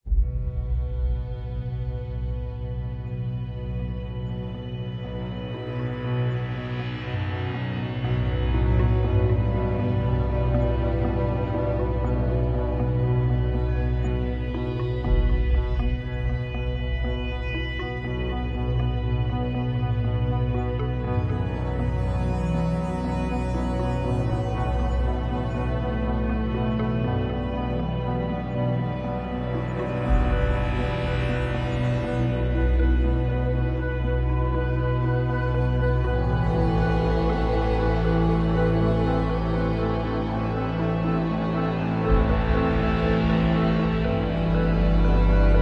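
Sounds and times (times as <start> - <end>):
gloomy ambient music: 0.0 - 45.5.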